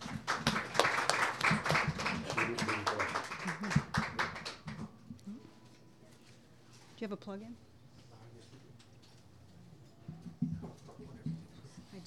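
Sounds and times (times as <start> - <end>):
audience clapping welcoming a songwriter: 0.0 - 4.9
speech: 7.0 - 7.7.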